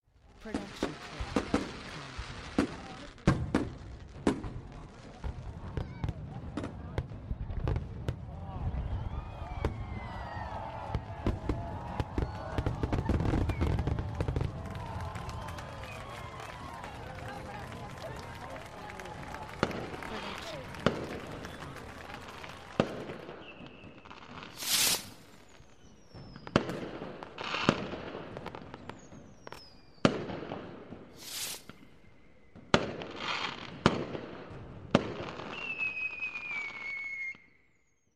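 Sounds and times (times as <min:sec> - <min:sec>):
fireworks: 0:00.2 - 0:37.6.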